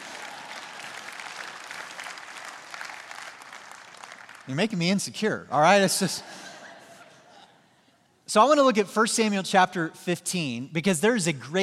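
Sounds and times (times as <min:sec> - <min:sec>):
clapping: 0:00.0 - 0:04.5
speech: 0:04.5 - 0:06.5, 0:08.4 - 0:11.6
laughter: 0:05.9 - 0:07.6.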